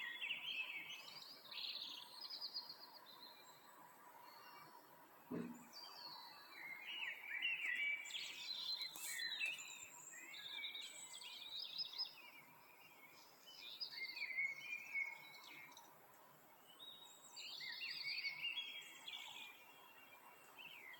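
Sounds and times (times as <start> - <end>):
several birds singing at 6 30 in the morning: 0.0 - 20.9
single low thump: 5.3 - 5.7.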